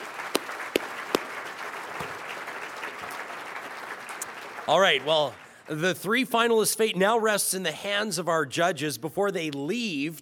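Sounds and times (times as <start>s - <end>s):
audience applause: 0.0s - 5.7s
speech: 4.7s - 10.1s.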